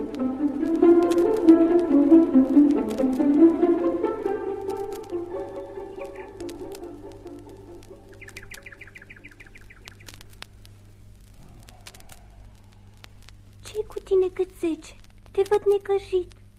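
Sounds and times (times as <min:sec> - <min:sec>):
scattered sharp clicks: 0:00.1 - 0:14.2, 0:14.9 - 0:16.5
nightingale singing: 0:05.2 - 0:10.4
person speaking: 0:13.6 - 0:16.3.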